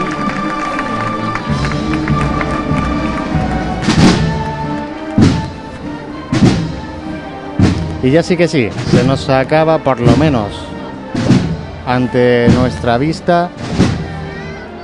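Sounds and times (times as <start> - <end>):
crowd applauding: 0.0 - 6.2
heavy deep thuds: 1.5 - 14.8
speech: 8.0 - 10.7, 11.9 - 13.6.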